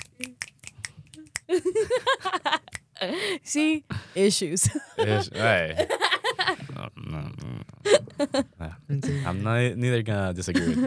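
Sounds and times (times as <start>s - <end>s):
hand clapping: 0.0s - 1.6s
speech: 1.5s - 2.4s, 3.0s - 6.6s, 8.2s - 10.8s
laughter: 4.7s - 6.8s, 10.5s - 10.8s.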